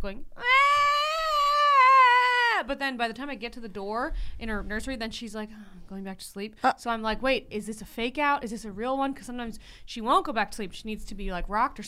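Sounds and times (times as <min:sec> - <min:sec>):
speech: 0:00.0 - 0:00.6, 0:02.7 - 0:11.8
adult voice imitating a baby crying: 0:00.4 - 0:02.6.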